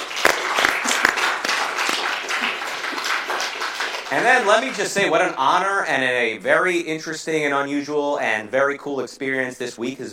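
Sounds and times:
audience clapping: 0:00.0 - 0:05.4
speech: 0:04.1 - 0:10.1.

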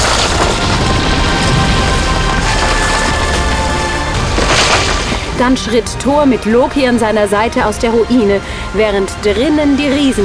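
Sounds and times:
wood splintering: 0:00.0 - 0:05.7
roof and walls collapsing: 0:00.0 - 0:06.1
speech: 0:05.4 - 0:10.2.

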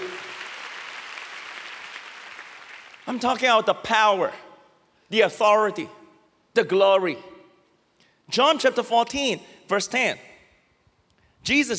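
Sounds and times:
audience clapping: 0:00.0 - 0:03.4
speech: 0:03.1 - 0:04.4, 0:05.1 - 0:06.0, 0:06.6 - 0:07.3, 0:08.3 - 0:10.3, 0:11.4 - 0:11.7.

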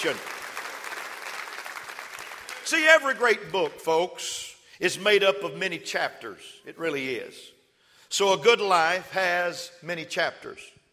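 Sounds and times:
speech: 0:00.0 - 0:00.4, 0:02.7 - 0:10.8
audience clapping hands: 0:00.0 - 0:03.5.

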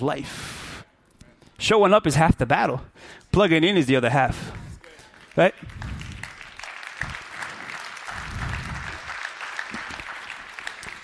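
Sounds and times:
speech: 0:00.0 - 0:00.6, 0:01.6 - 0:04.6, 0:05.4 - 0:05.9
audience clapping: 0:04.8 - 0:11.0.

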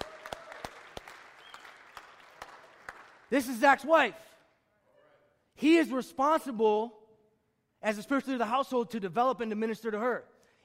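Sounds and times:
audience applause: 0:00.0 - 0:03.3
speech: 0:03.3 - 0:04.3, 0:05.6 - 0:07.0, 0:07.8 - 0:10.3.

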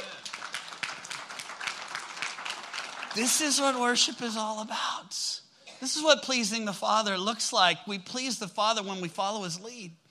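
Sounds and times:
hand clapping: 0:00.0 - 0:03.8
speech: 0:03.1 - 0:10.0.

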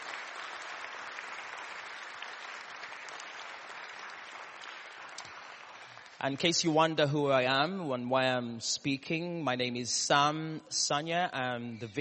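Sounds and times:
audience applause: 0:00.0 - 0:06.4
speech: 0:06.2 - 0:12.0.

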